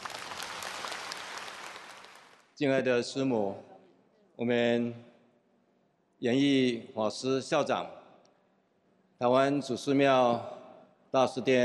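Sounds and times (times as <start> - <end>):
audience applause at a formal ceremony: 0.0 - 2.4
speech: 2.6 - 3.7, 4.4 - 5.1, 6.2 - 8.0, 9.2 - 11.6.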